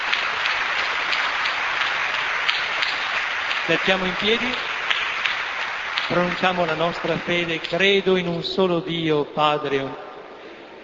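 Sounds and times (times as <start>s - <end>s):
applause: 0.0s - 8.4s
speech: 3.7s - 4.7s, 6.1s - 10.0s.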